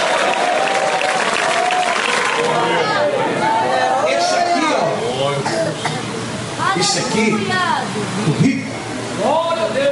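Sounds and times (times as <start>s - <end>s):
audience applause: 0.0s - 3.2s
crowd murmur: 0.0s - 9.2s
speech: 7.2s - 8.5s.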